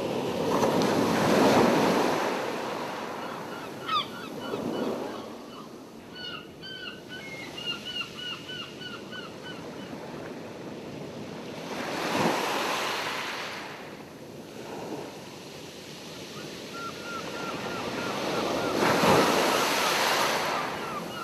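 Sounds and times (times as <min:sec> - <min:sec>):
ocean: 0:00.0 - 0:21.2
seagulls: 0:03.2 - 0:09.6, 0:16.4 - 0:21.2.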